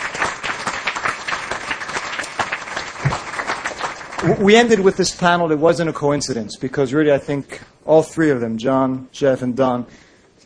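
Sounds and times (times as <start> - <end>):
audience applause: 0.0 - 5.3
speech: 4.2 - 10.1.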